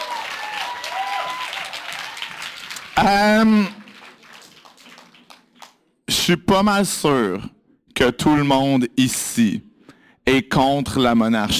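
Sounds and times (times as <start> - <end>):
audience applause: 0.0 - 5.8
speech: 3.0 - 3.8, 6.3 - 9.7, 10.3 - 11.5.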